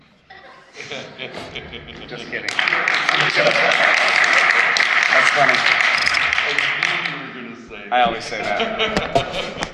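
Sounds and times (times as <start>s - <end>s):
laughter: 0.3s - 9.7s
speech: 0.9s - 4.2s, 5.3s - 5.9s, 7.9s - 9.6s
clapping: 2.4s - 7.2s.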